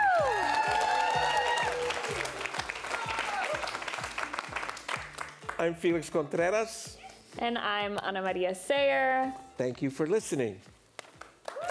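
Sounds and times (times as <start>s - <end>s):
audience applause and cheering at a live show: 0.0s - 5.7s, 11.2s - 11.7s
speech: 5.6s - 10.7s.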